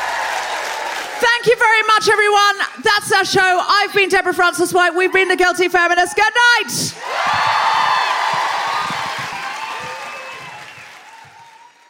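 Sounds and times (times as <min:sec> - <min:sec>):
audience applause: 0:00.0 - 0:01.2, 0:07.0 - 0:11.8
speech: 0:01.2 - 0:07.4
whoops and shouts: 0:07.0 - 0:11.8.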